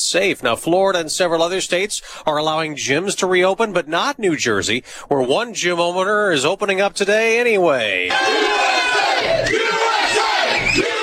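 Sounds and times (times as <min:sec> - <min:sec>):
speech: 0:00.1 - 0:09.6
crowd cheering outside a gym: 0:08.1 - 0:11.0.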